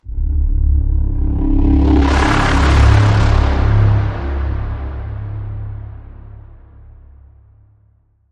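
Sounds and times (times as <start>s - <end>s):
pitch bend on C sharp: 0.0s - 5.7s.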